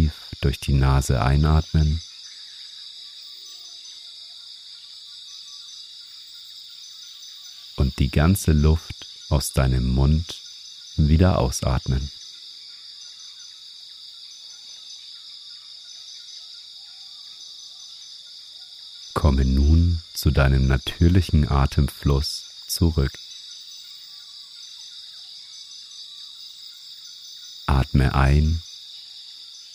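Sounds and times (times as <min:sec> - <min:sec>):
faint bird chirps: 0:00.0 - 0:29.7
high-pitched chorus of insects buzzing in a rainforest: 0:00.0 - 0:29.7
speech: 0:00.1 - 0:02.1, 0:07.8 - 0:10.4, 0:11.0 - 0:12.2, 0:19.2 - 0:23.3, 0:27.8 - 0:28.7.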